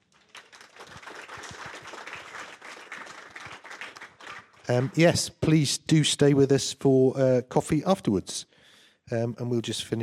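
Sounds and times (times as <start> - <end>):
audience applauding: 0.0 - 5.2
speech: 4.7 - 8.5, 9.1 - 10.0.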